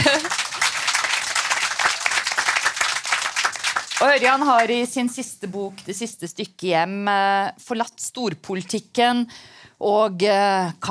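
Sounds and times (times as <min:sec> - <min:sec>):
laughter: 0:00.0 - 0:00.6
audience applause: 0:00.0 - 0:04.7
speech: 0:04.0 - 0:10.8.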